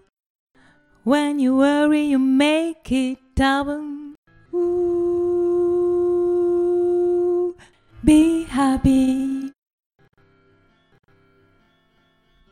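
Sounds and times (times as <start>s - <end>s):
woman's voice: 1.1s - 5.9s, 6.7s - 9.5s.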